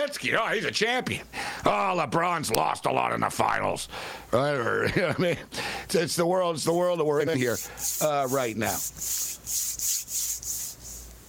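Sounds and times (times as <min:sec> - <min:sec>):
speech: 0:00.1 - 0:10.0
hands rubbing together: 0:07.2 - 0:11.2.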